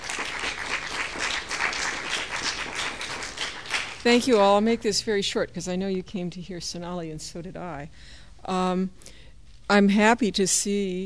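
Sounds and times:
lecture audience applause: 0.0s - 4.2s
speech: 4.0s - 11.0s.

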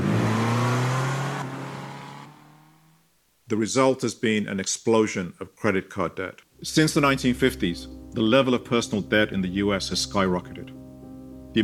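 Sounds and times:
Fiat 500 Abarth engine revving: 0.0s - 3.0s
speech: 3.5s - 10.8s.

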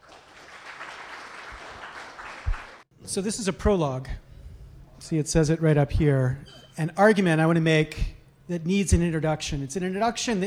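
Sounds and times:
audience applause welcoming a professor onto the stage: 0.0s - 2.8s
speech: 3.1s - 4.3s, 5.1s - 10.4s.

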